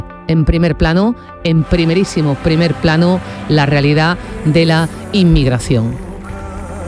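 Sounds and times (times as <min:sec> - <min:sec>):
speech: 0:00.0 - 0:06.0
ambient sound of the harbour of Arguineguín: 0:01.6 - 0:06.2.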